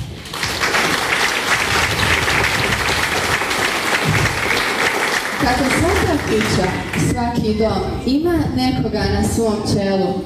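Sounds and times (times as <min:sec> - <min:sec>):
audience applause at a school ceremony: 0:00.0 - 0:07.0
speech: 0:05.5 - 0:10.2.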